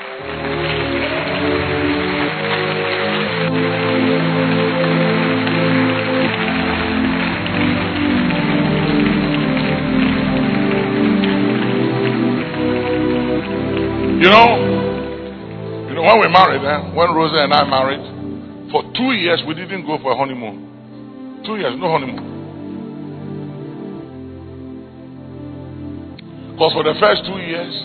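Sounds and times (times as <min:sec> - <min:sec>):
audience clapping: 0:00.0 - 0:19.5, 0:21.5 - 0:22.4
speech: 0:16.3 - 0:18.1, 0:18.7 - 0:20.7, 0:21.4 - 0:22.3, 0:26.6 - 0:27.8.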